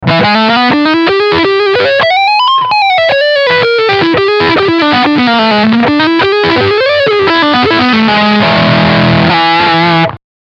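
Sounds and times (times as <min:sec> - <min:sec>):
distorted guitar lick on front pickup: 0:00.0 - 0:10.2.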